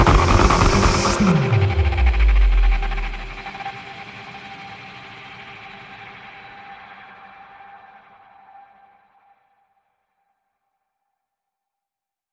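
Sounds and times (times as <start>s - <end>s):
driving drums: 0.0s - 3.6s
pulsing synth pads: 0.0s - 3.9s.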